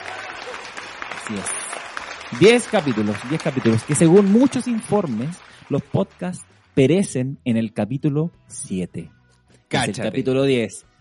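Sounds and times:
applause: 0.0 - 6.9
speech: 1.3 - 1.7, 2.3 - 10.9.

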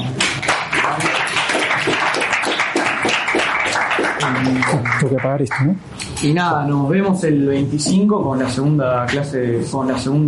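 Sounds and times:
audience applause: 0.0 - 5.8
speech: 4.3 - 10.2.

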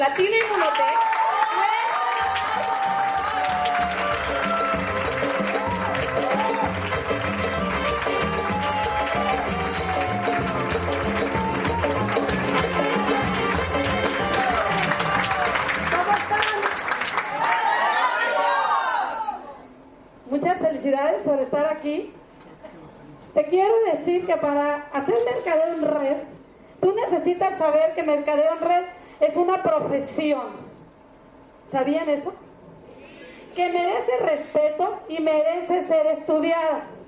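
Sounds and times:
speech: 0.0 - 1.0, 20.6 - 22.2, 23.4 - 30.6, 31.7 - 32.4, 33.6 - 36.9
audience applause and cheering: 0.4 - 19.4
upbeat music with thumping beat: 3.7 - 15.9.

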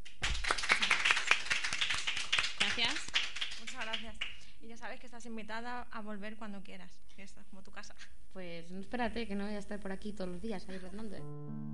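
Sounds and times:
several people clapping: 0.0 - 4.5
speech: 4.0 - 11.7.

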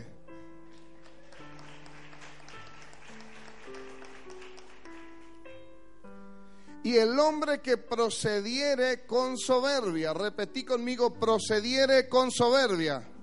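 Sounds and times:
audience applause: 0.7 - 5.4
speech: 6.8 - 13.1.

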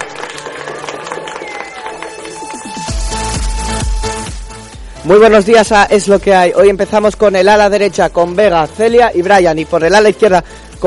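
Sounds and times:
audience applause and cheering: 0.0 - 3.8
loud music jingle with heavy thumping bass beat: 2.6 - 10.1
speech: 5.0 - 10.8.

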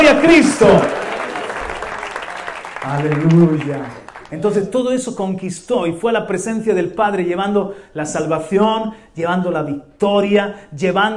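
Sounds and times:
audience applause: 0.0 - 4.6
speech: 0.1 - 1.0, 2.8 - 11.1.

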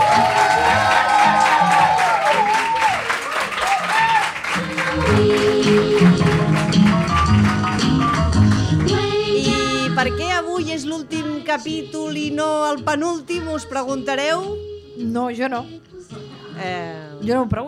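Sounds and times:
people whooping and cheering: 0.0 - 6.6
audience clapping: 0.0 - 9.7
speech: 11.0 - 15.9, 16.6 - 17.6.

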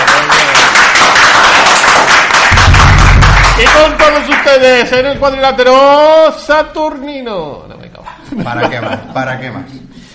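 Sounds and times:
crowd applause: 0.0 - 4.5
low rumbling thump: 2.5 - 4.1
speech: 3.8 - 7.7, 8.3 - 10.1.

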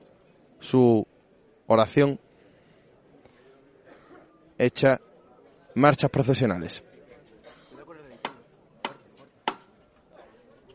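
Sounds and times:
speech: 0.6 - 1.1, 1.7 - 2.2, 4.6 - 5.1, 5.8 - 6.9
hammer knocks on a procession float knocker: 8.2 - 9.7.

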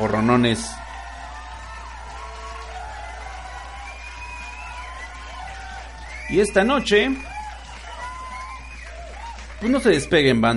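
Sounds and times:
speech: 0.0 - 0.8, 6.3 - 7.3, 9.6 - 10.5
audience applause: 0.0 - 10.5.

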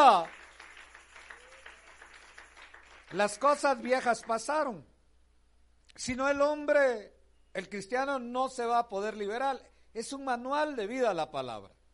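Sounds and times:
speech: 0.0 - 0.4, 3.1 - 4.9, 6.0 - 11.8
audience clapping loudly: 0.0 - 4.5.

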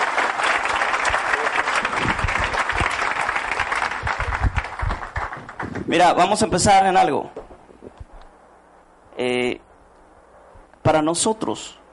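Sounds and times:
crowd applauding: 0.0 - 6.2
speech: 5.9 - 7.4, 9.2 - 9.6, 10.9 - 11.8.

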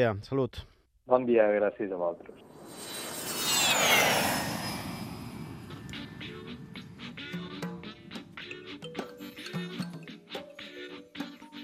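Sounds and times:
speech: 0.0 - 3.0
airplane roaring past: 2.3 - 8.8.

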